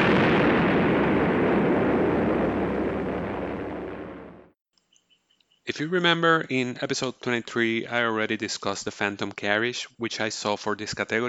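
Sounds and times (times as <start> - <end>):
aerial bombs exploding in a continuous rumbling roar: 0.0 - 4.6
faint chirps: 4.8 - 5.8
speech: 5.7 - 11.2.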